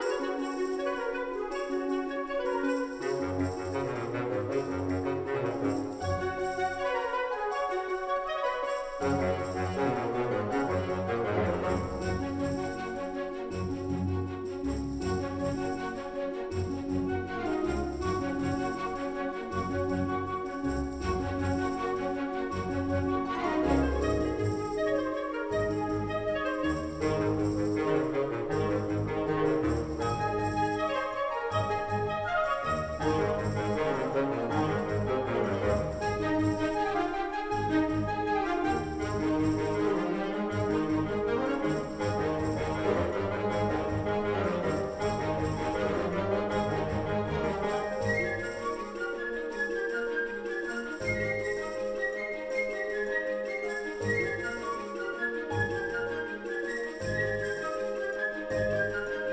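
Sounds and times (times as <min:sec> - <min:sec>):
joyful music loop: 0:00.0 - 0:59.3.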